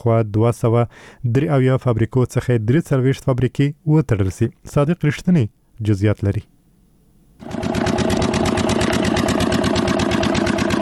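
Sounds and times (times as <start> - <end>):
speech: 0.0 - 6.6
generator engine powering a pipe-making factory in a Kandahar industrial park: 7.4 - 10.8.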